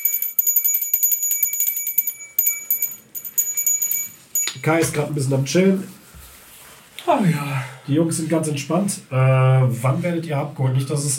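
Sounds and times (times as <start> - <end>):
hand bell ringing: 0.0 - 4.9
speech: 4.6 - 6.0, 7.1 - 11.1.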